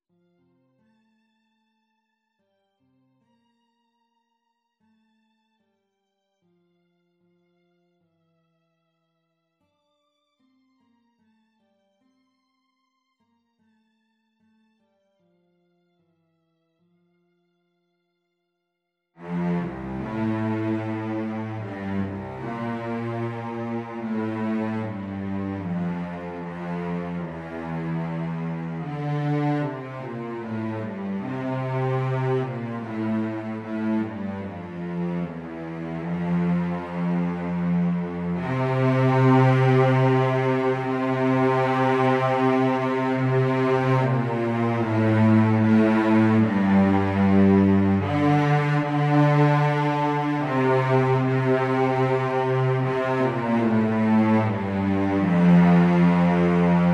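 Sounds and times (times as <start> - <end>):
cello playing: 19.2 - 56.9.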